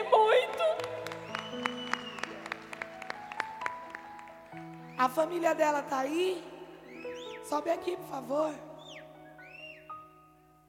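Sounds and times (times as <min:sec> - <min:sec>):
applause: 0:00.4 - 0:05.0
speech: 0:05.0 - 0:06.5, 0:07.5 - 0:08.7.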